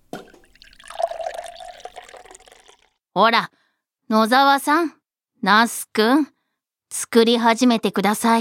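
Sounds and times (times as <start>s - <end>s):
soy sauce, vinegar and sugar being mixed: 0.0s - 2.9s
speech: 3.2s - 6.3s, 6.9s - 8.3s.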